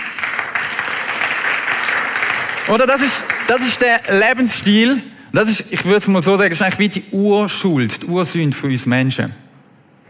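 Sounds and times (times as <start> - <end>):
audience applause: 0.0 - 4.3
speech: 2.7 - 9.4.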